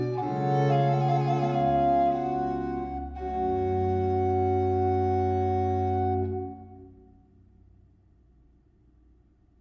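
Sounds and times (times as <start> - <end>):
adagio: 0.0 - 7.4.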